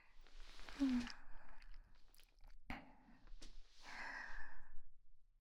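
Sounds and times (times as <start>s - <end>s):
ASMR sleep breathing in the right channel: 0.1s - 2.5s, 3.2s - 4.8s.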